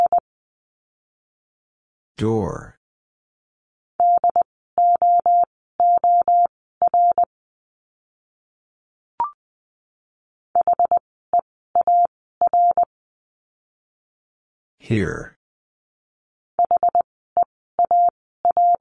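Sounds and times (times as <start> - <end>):
Morse code beeps at 20 wpm: 0.0 - 0.2, 4.0 - 7.3, 10.6 - 11.0, 11.8 - 12.9, 16.6 - 18.7
speech: 2.2 - 2.8, 14.9 - 15.4.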